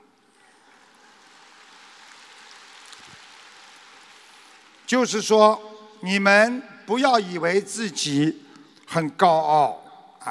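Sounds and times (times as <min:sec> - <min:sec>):
audience applause: 0:00.5 - 0:05.3
speech: 0:04.9 - 0:10.2.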